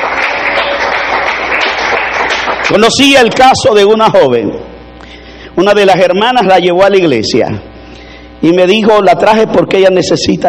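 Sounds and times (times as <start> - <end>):
audience applause: 0.0 - 2.9
speech: 2.7 - 4.7, 5.6 - 7.7, 8.4 - 10.4.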